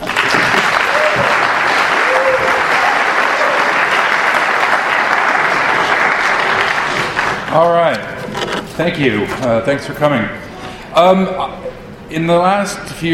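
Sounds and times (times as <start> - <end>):
audience applause: 0.0 - 7.9
speech: 7.6 - 8.1, 8.8 - 10.4, 11.0 - 13.1.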